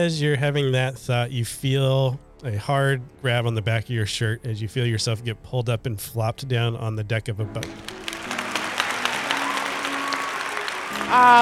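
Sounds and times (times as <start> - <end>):
speech: 0.0 - 8.0, 11.1 - 11.4
crowd clapping: 7.6 - 11.4.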